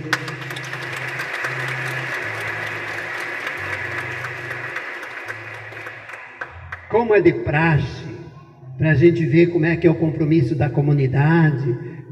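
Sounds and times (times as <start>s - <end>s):
crowd applause: 0.0s - 7.0s
speech: 7.0s - 8.0s, 8.8s - 11.9s.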